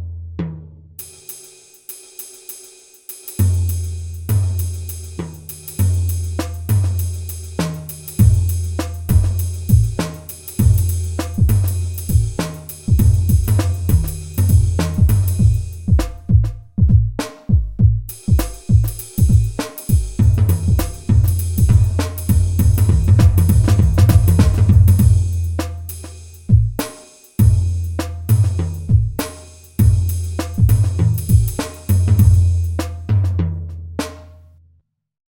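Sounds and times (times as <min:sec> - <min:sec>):
groovy tom drum beat: 0:00.4 - 0:34.4.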